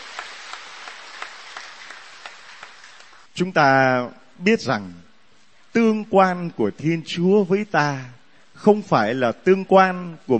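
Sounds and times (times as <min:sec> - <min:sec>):
audience applauding: 0:00.0 - 0:03.3
speech: 0:03.4 - 0:05.0, 0:05.8 - 0:10.3.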